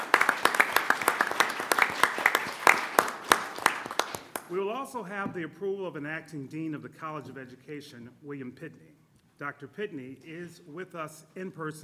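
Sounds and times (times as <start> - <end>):
audience applause: 0.0 - 4.5
speech: 4.5 - 11.8.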